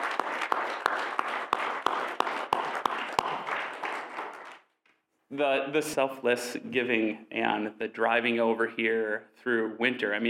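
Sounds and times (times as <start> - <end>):
audience applause: 0.0 - 4.7
speech: 5.3 - 10.2.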